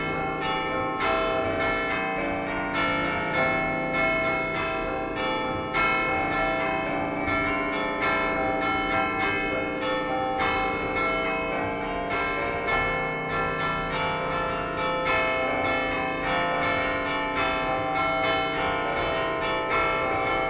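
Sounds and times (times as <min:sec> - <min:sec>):
San Cipriano church bells in Liguria Genova: 0:00.0 - 0:20.4.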